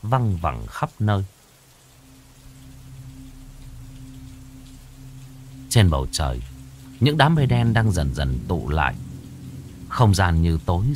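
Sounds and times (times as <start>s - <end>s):
speech: 0.0s - 1.4s, 5.7s - 9.0s, 9.9s - 10.9s
steady rain: 0.0s - 10.9s
low constant droning tone: 1.4s - 10.9s.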